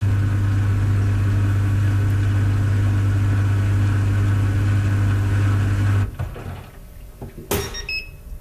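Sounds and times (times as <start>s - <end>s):
small European clothes dryer running: 0.0s - 8.0s
small European clothes dryer beeping: 7.5s - 8.4s.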